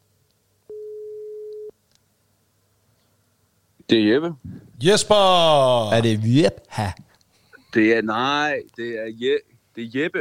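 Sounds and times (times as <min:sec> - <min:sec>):
telephone ringing tone of an outgoing call: 0:00.7 - 0:01.7
speech: 0:03.9 - 0:07.0, 0:07.7 - 0:10.2.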